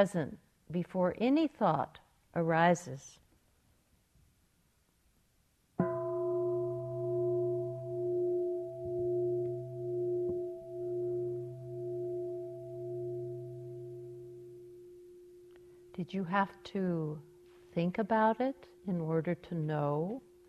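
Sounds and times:
speech: 0:00.0 - 0:03.2, 0:16.0 - 0:20.3
meditation bell ringing: 0:05.8 - 0:16.0.

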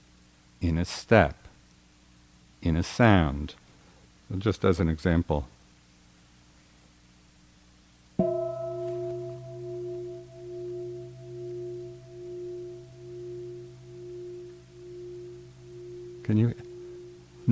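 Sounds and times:
speech: 0:00.6 - 0:01.4, 0:02.6 - 0:03.6, 0:04.3 - 0:05.6
meditation bell ringing: 0:08.2 - 0:17.4.

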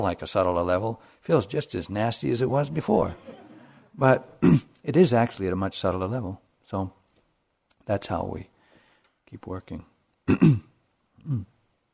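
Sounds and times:
speech: 0:00.0 - 0:03.4, 0:04.0 - 0:07.0, 0:07.9 - 0:08.5, 0:09.3 - 0:11.5
speaker clearing his throat during a morning instruction talk: 0:04.4 - 0:04.8, 0:10.3 - 0:11.6.

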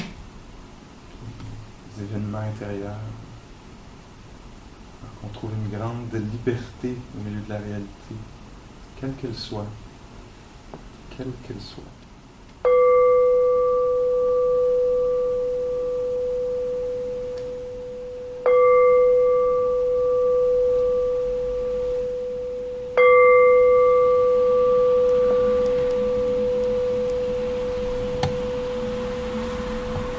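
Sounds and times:
speech: 0:02.0 - 0:03.3, 0:05.2 - 0:08.4, 0:09.0 - 0:09.8, 0:10.7 - 0:12.0
bell ringing: 0:12.6 - 0:28.9.

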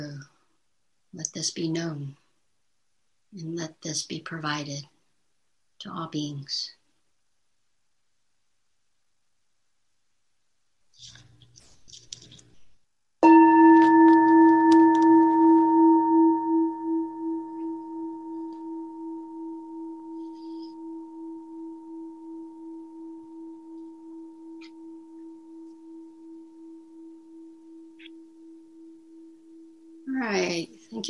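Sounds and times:
speech: 0:01.2 - 0:02.2, 0:03.3 - 0:04.9, 0:05.8 - 0:06.8
single meditation bell ringing: 0:13.2 - 0:31.0.

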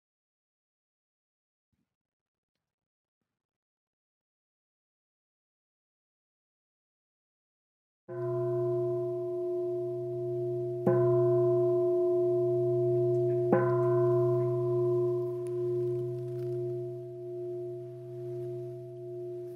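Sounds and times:
meditation bell struck: 0:08.1 - 0:19.5.

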